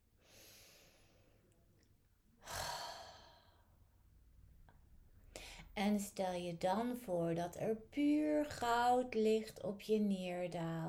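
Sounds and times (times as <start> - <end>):
deep breath in and out during a guided meditation: 0.2 - 1.4, 2.4 - 3.9
speech: 5.8 - 10.8.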